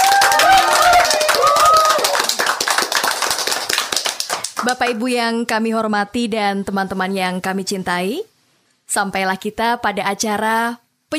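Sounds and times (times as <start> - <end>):
audience applause: 0.0 - 4.7
speech: 4.7 - 8.3, 8.9 - 11.1.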